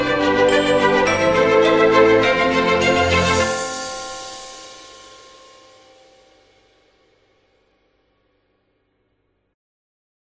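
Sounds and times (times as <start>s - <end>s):
christmas music: 0.0s - 6.9s.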